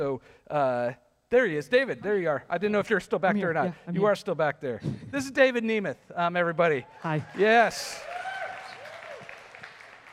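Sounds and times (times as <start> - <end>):
speech: 0.0 - 8.2
audience applause: 7.0 - 10.1.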